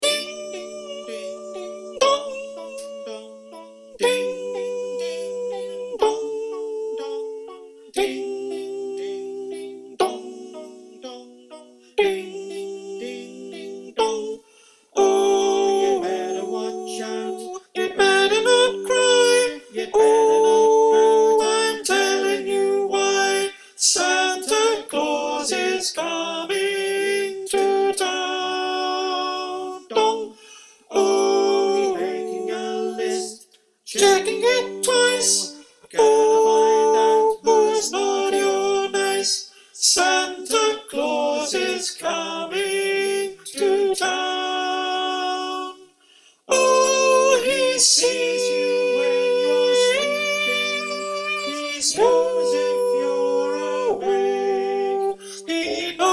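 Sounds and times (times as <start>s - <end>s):
choir with soprano: 0.0s - 56.1s.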